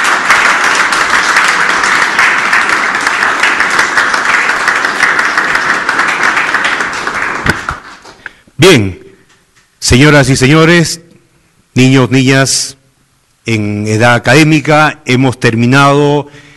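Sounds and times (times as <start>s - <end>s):
crowd applause: 0.0s - 8.2s
speech: 8.6s - 9.0s, 9.8s - 11.0s, 11.8s - 12.8s, 13.5s - 16.5s.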